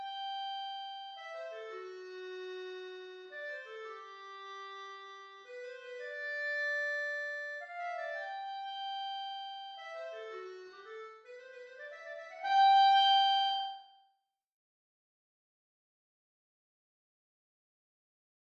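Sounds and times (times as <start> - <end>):
transposed clarinet: 0.0 - 14.1.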